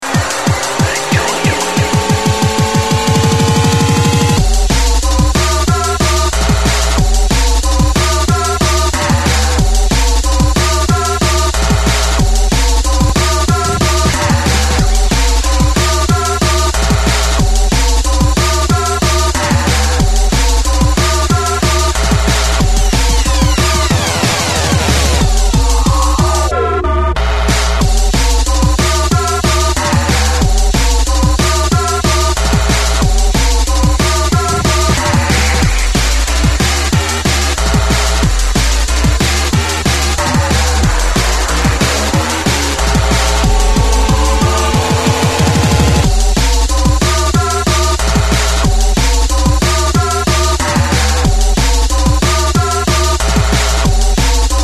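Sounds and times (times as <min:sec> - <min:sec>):
drum and bass music: 0:00.0 - 0:54.6.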